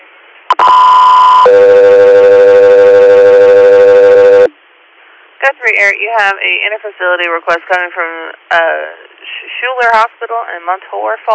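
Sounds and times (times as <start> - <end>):
radio dispatch alert tones: 0.5 - 4.5
speech: 5.7 - 11.3.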